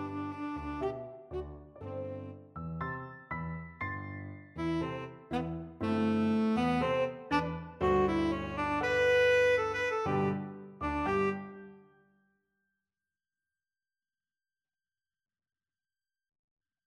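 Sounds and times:
tenor saxophone: 0.0s - 2.2s, 4.6s - 11.8s.

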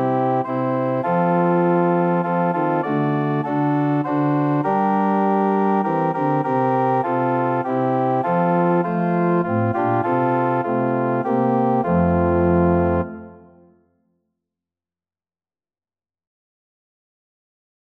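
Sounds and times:
organ: 0.0s - 13.7s.

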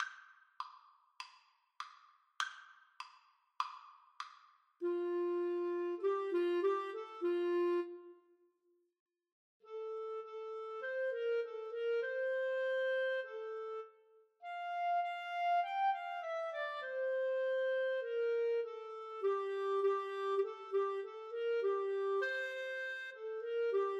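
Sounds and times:
clarinet duet: 4.8s - 8.2s, 9.7s - 23.9s.

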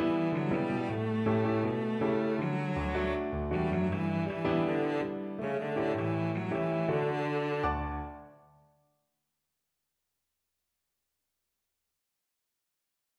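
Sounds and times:
cello: 0.0s - 8.4s.

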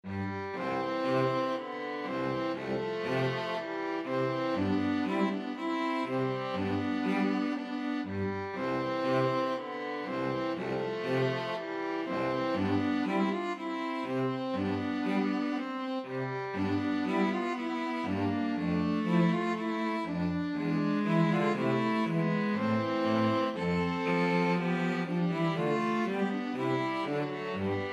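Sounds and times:
string trio playing symphonic music: 0.0s - 27.9s.

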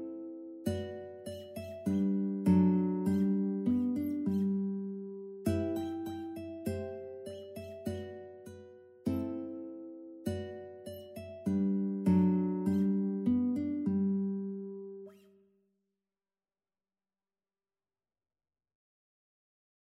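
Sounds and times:
guitar piece: 0.0s - 15.4s.

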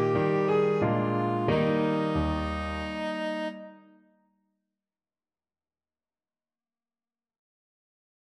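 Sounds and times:
tenor saxophone: 0.0s - 4.0s.

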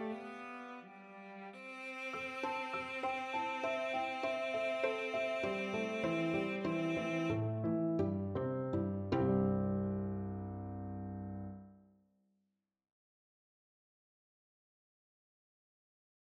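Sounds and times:
piano quartet: 2.2s - 11.7s.

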